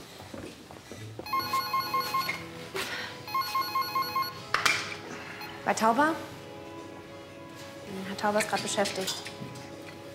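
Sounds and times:
telephone ringing: 1.3s - 2.5s, 3.3s - 4.4s
speech: 5.7s - 6.4s, 8.2s - 9.5s.

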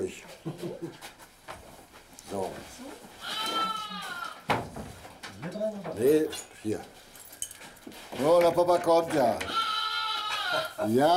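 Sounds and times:
speech: 0.0s - 0.7s, 6.0s - 7.0s, 8.2s - 9.6s, 10.8s - 11.1s
lamb bleating: 3.2s - 4.5s, 9.4s - 10.8s.

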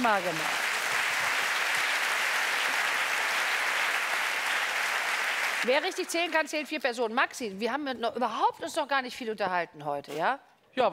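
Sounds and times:
speech: 0.0s - 0.6s, 5.6s - 10.9s
applause: 0.0s - 6.8s.

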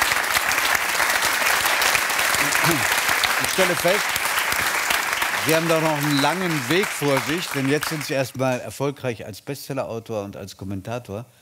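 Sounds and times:
audience applause: 0.0s - 8.6s
speech: 2.4s - 4.7s, 5.4s - 11.4s.

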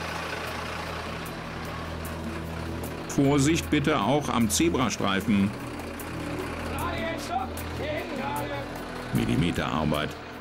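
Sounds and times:
fire engine accelerating: 0.0s - 10.3s
speech: 3.2s - 5.7s, 9.3s - 10.2s.

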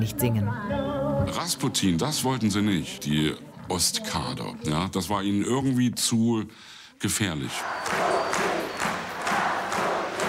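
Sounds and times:
speech: 0.0s - 8.5s
concert crowd in Poland shouting and stomping for more: 7.6s - 10.2s.

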